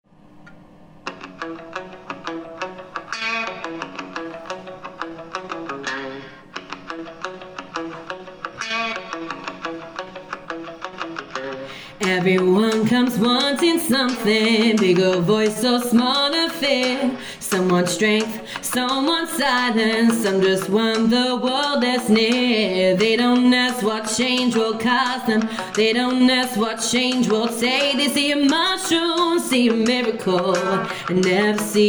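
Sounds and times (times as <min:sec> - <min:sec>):
vocals: 0:11.5 - 0:31.8.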